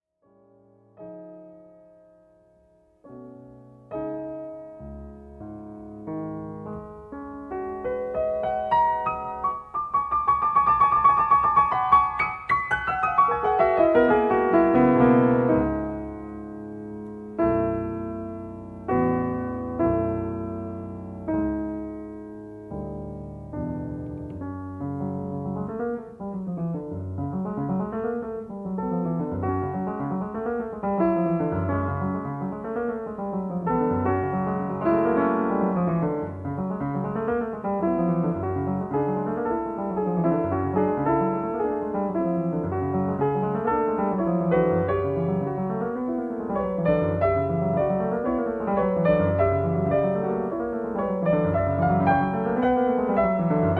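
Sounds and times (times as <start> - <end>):
piano sonata: 0.2 - 53.7.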